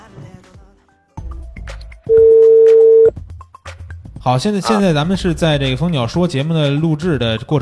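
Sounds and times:
telephone number being dialed: 2.1 - 3.1
speech: 4.2 - 7.6.

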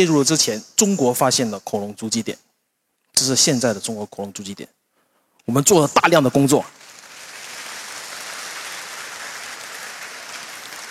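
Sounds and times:
speech: 0.0 - 2.5, 3.2 - 4.8, 5.5 - 6.8
audience applause: 6.8 - 10.8.

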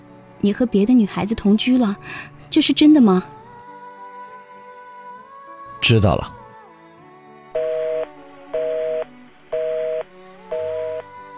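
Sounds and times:
speech: 0.4 - 3.4, 5.8 - 6.4
telephone busy tone beeps after a hang-up: 7.6 - 11.0.

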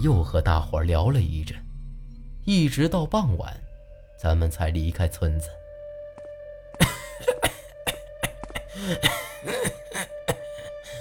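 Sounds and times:
speech: 0.0 - 1.7, 2.4 - 3.6, 4.2 - 5.6, 8.8 - 10.1
violent coughing fit: 6.8 - 10.9.

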